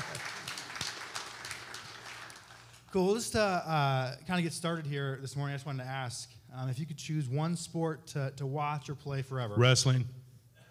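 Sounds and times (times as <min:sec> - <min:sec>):
audience applause: 0:00.0 - 0:02.9
speech: 0:02.9 - 0:10.2.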